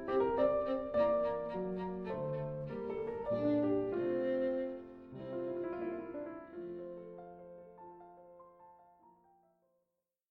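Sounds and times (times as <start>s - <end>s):
violin in a grand duo in D minor: 0.0s - 7.8s
piano duo in D minor: 0.0s - 9.8s.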